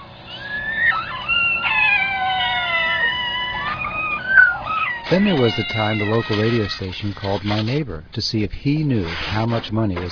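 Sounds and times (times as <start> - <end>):
family cat Samantha and her kittens meowing in unison: 0.0 - 7.7
speech: 5.1 - 10.1.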